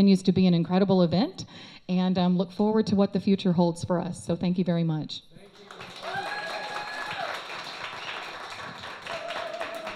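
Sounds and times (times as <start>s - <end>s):
speech: 0.0s - 6.0s
audience applause: 5.6s - 9.9s.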